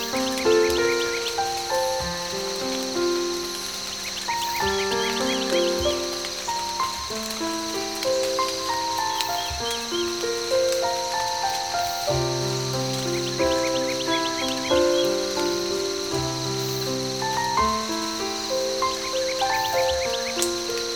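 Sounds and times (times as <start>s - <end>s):
nature sounds: 0.0s - 20.9s.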